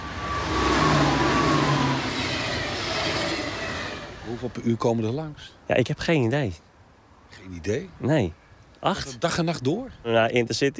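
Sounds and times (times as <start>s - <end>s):
train rushing past: 0.0s - 5.0s
speech: 4.4s - 6.7s, 7.3s - 10.7s.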